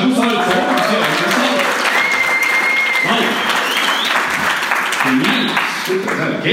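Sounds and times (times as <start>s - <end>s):
voices and cheering: 0.0s - 6.3s
audience applause: 0.0s - 6.4s.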